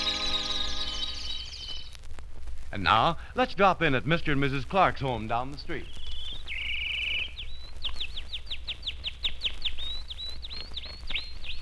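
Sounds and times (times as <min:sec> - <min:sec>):
canary chirping: 0:00.0 - 0:02.1, 0:04.7 - 0:11.6
speech: 0:02.7 - 0:06.0.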